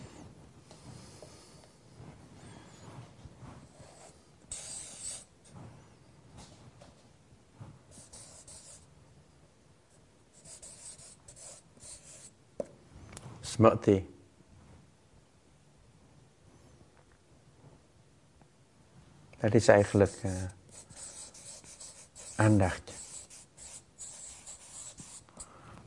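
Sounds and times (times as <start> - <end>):
writing on a board: 3.7 - 5.3, 7.9 - 8.9, 10.4 - 12.4, 19.9 - 25.5
speech: 13.5 - 14.1, 19.5 - 20.6, 22.4 - 22.9.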